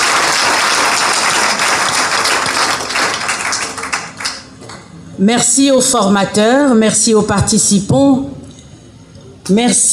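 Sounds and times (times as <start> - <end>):
audience applause: 0.0 - 4.5
speech: 5.2 - 8.4, 9.5 - 9.9.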